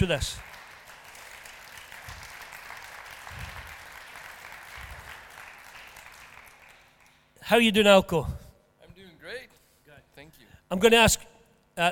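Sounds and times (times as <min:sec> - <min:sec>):
speech: 0:00.0 - 0:00.5, 0:07.4 - 0:08.4, 0:10.2 - 0:11.9
audience applause welcoming a speaker at a religious meeting: 0:00.0 - 0:07.3.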